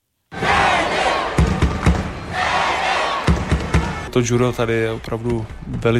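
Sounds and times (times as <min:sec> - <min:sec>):
judo arena crowd cheering: 0:00.3 - 0:04.1
speech: 0:04.2 - 0:05.9.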